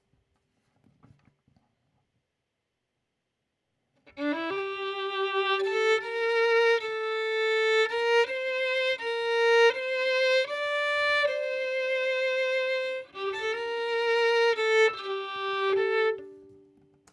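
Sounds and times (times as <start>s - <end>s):
violin: 4.0s - 17.1s.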